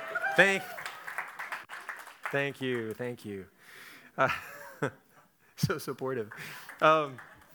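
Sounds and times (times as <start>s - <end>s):
audience applause: 0.0s - 2.9s, 6.2s - 7.5s
speech: 0.4s - 0.8s, 2.3s - 5.0s, 5.6s - 7.3s.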